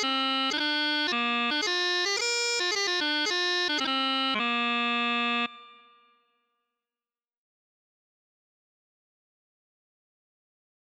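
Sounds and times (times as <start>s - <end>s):
bagpipe chanter playing: 0.0s - 5.8s.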